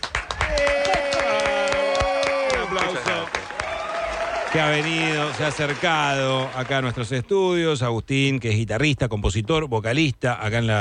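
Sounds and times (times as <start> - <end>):
studio audience applause: 0.0 - 7.3
speech: 4.6 - 10.7.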